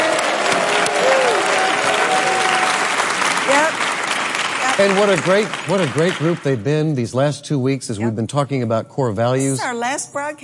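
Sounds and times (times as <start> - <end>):
audience clapping during a church program: 0.0 - 7.0
speech: 4.8 - 10.4.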